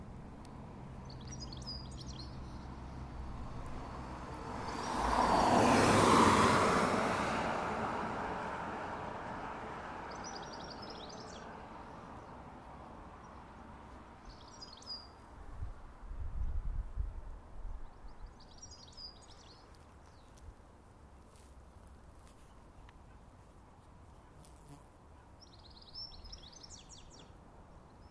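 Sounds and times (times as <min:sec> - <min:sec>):
traffic at a bus stop: 0:00.0 - 0:16.1, 0:17.4 - 0:28.0
birds at a bus stop: 0:01.0 - 0:03.0, 0:10.1 - 0:12.4, 0:13.2 - 0:15.2, 0:17.8 - 0:20.5, 0:22.2 - 0:28.0.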